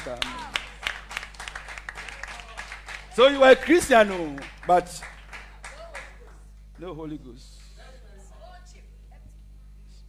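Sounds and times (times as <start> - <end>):
speech: 0.0 - 0.5, 3.2 - 5.1, 6.8 - 7.6
crowd clapping: 0.0 - 7.8.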